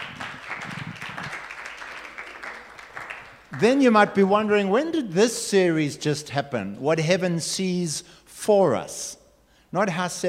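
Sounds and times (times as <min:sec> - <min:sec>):
audience applause: 0:00.0 - 0:03.7
speech: 0:03.5 - 0:10.2.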